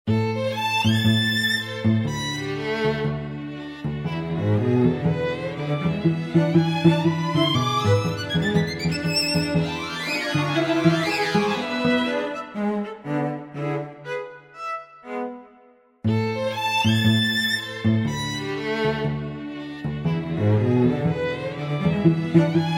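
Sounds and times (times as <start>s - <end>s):
string swing music: 0.1s - 22.7s.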